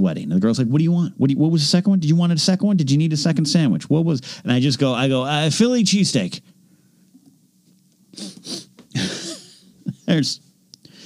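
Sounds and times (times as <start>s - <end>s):
speech: 0.0s - 6.5s, 10.1s - 10.5s
voice imitating sniffing: 8.1s - 8.8s.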